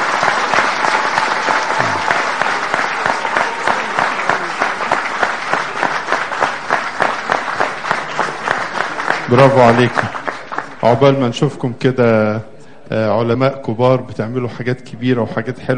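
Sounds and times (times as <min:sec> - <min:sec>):
audience applause for a group of students being honoured: 0:00.0 - 0:11.2
speech: 0:09.3 - 0:10.2, 0:10.8 - 0:15.7.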